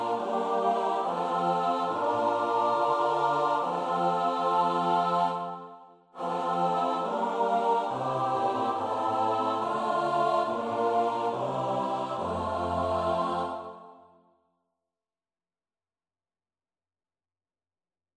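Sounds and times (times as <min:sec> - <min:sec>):
SATB choir singing: 0:00.0 - 0:14.2.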